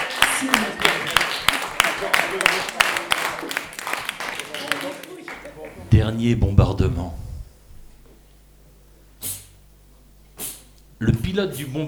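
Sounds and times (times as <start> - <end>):
audience applauding: 0.0 - 5.9
speech: 2.0 - 2.8, 5.9 - 7.2, 11.0 - 11.8.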